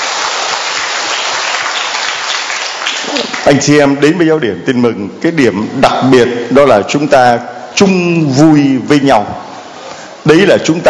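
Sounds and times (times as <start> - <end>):
audience applauding: 0.0 - 3.6
speech: 3.2 - 9.4, 10.3 - 10.8.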